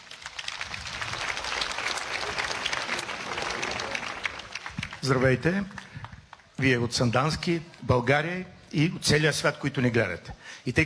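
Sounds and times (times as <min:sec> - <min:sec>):
audience applause: 0:00.0 - 0:06.5
speech: 0:05.0 - 0:05.8, 0:06.6 - 0:10.8.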